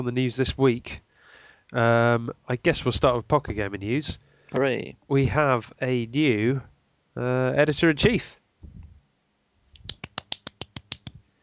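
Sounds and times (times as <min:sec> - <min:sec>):
speech: 0:00.0 - 0:01.1, 0:01.7 - 0:08.8
hand clapping: 0:09.8 - 0:11.2.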